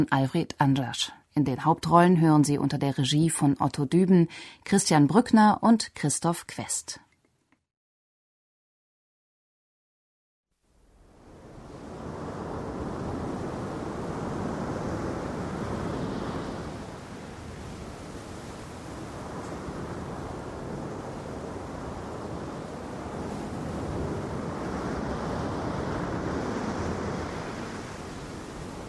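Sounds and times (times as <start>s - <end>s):
speech: 0.0s - 7.0s
ocean surf breaking on shore: 10.6s - 28.8s.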